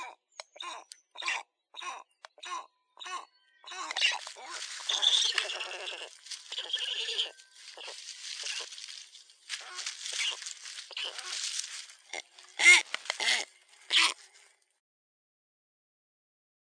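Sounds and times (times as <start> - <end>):
black stork calling: 0.0 - 14.6.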